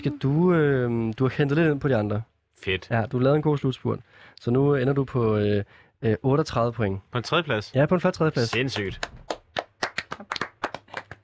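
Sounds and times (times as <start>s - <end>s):
speech: 0.0s - 9.2s
small round of applause: 8.4s - 11.2s.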